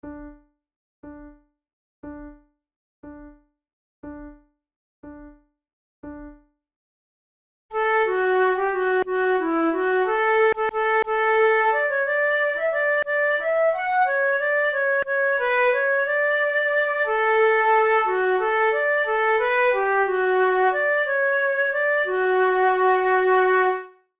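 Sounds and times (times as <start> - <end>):
flute duet: 7.8 - 24.0.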